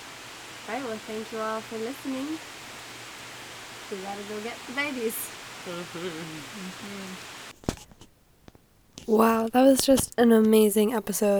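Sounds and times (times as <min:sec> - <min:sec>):
rain: 0:00.0 - 0:07.9
speech: 0:00.7 - 0:02.6, 0:03.9 - 0:07.4, 0:09.1 - 0:11.3.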